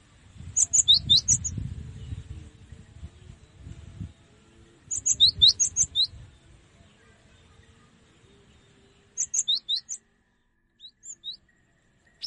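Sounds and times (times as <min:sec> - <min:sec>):
cinereous tit singing high sharp two-pitched chirps: 0:00.6 - 0:01.6, 0:04.9 - 0:06.2, 0:09.1 - 0:10.0, 0:10.8 - 0:12.2.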